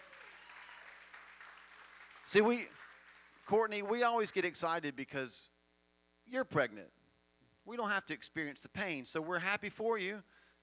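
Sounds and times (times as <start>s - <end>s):
audience clapping: 0.0s - 4.4s
speech: 2.3s - 2.8s, 3.5s - 5.5s, 6.3s - 7.0s, 7.7s - 10.4s.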